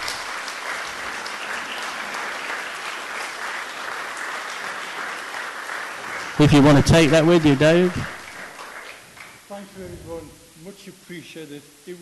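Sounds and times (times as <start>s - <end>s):
audience applause: 0.0s - 9.4s
speech: 6.4s - 8.2s, 9.6s - 12.0s.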